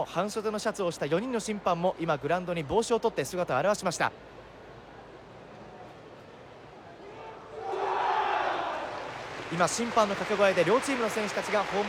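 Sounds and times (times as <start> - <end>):
speech: 0.0 - 4.4, 9.5 - 11.8
large stadium crowd applauding and cheering: 7.5 - 11.8.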